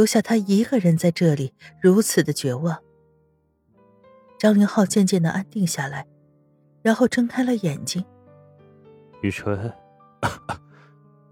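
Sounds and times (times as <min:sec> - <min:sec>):
speech: 0:00.0 - 0:02.9, 0:04.4 - 0:06.1, 0:06.8 - 0:08.1, 0:09.2 - 0:10.6
hoarse man coughing: 0:10.2 - 0:10.8.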